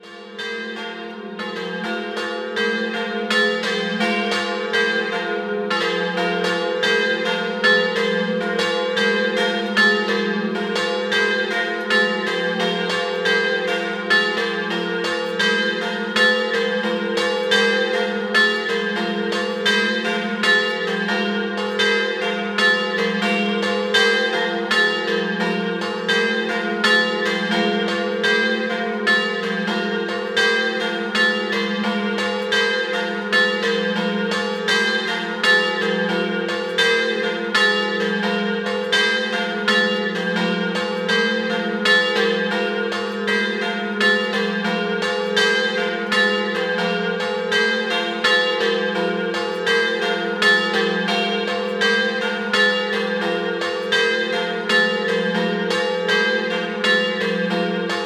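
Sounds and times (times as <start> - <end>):
double bells ringing: 0.0 - 58.0.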